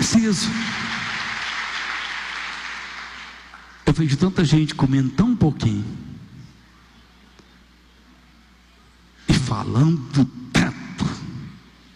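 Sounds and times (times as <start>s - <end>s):
congregation applause during a religious sermon: 0.0s - 4.1s
speech: 0.2s - 0.8s, 3.9s - 6.0s, 9.5s - 10.4s.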